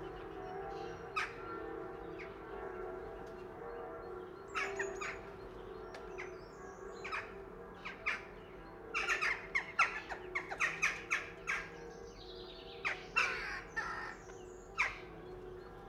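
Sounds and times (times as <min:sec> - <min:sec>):
farm church bells: 0:00.0 - 0:15.8
sparrows: 0:00.0 - 0:15.8.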